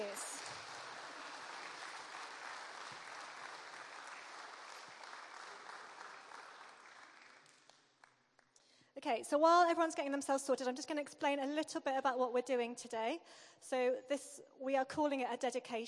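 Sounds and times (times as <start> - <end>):
crowd applauding: 0.0 - 8.6
speech: 9.0 - 15.8.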